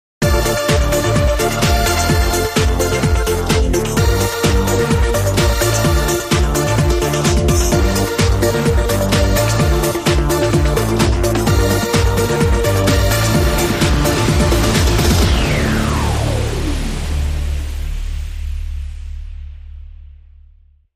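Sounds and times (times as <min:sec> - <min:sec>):
Euro trance music: 0:00.2 - 0:20.0.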